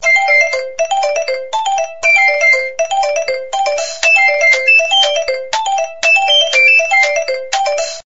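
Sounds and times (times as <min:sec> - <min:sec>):
Nokia message tone: 0:00.0 - 0:07.9.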